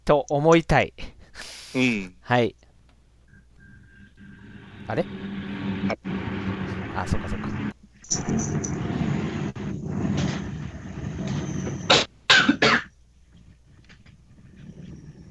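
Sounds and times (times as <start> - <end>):
speech: 0.1 - 2.6, 4.9 - 6.3, 7.0 - 9.0
sharp bursts of noise: 3.3 - 12.1
train passing with rumbling roar: 3.6 - 11.9.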